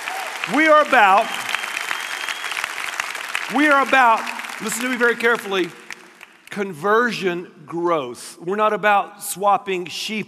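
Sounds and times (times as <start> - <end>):
crowd whooping: 0.0 - 3.1
audience applause: 0.0 - 6.5
speech: 0.5 - 1.4, 3.5 - 5.8, 6.5 - 10.2.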